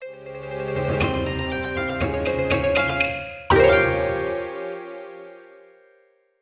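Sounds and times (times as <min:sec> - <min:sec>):
game over jingle: 0:01.1 - 0:05.6.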